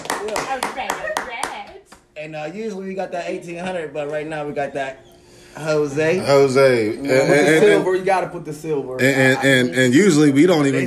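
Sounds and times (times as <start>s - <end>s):
hand claps: 0.0s - 2.1s
speech: 0.3s - 1.1s, 2.2s - 10.8s.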